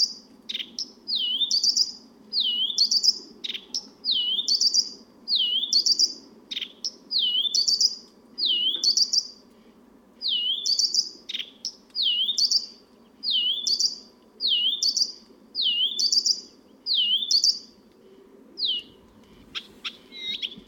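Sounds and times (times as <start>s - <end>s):
Acrocephalus dumetorum singing: 0.0s - 9.4s, 10.2s - 17.8s, 18.6s - 20.6s.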